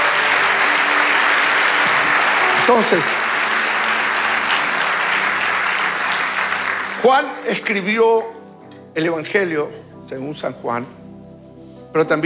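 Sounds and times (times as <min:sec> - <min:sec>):
audience applause: 0:00.0 - 0:07.8
speech: 0:02.7 - 0:03.2, 0:07.0 - 0:08.4, 0:09.0 - 0:11.0, 0:11.9 - 0:12.2.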